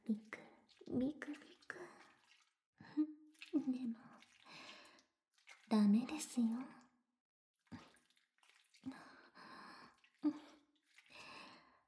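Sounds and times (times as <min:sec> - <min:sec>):
water splashing while feet are washed: 0:00.0 - 0:06.6, 0:07.7 - 0:09.0, 0:09.9 - 0:11.4
speech: 0:00.1 - 0:01.9, 0:05.7 - 0:06.8.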